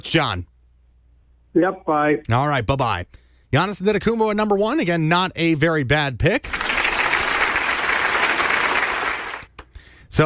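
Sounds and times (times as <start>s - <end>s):
speech: 0.0s - 0.5s, 1.5s - 6.7s
applause: 6.4s - 9.5s.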